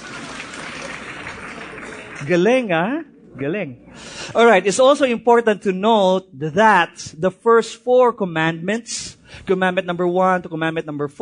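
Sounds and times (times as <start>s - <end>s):
crowd applauding: 0.0s - 2.5s
speech: 2.2s - 11.2s.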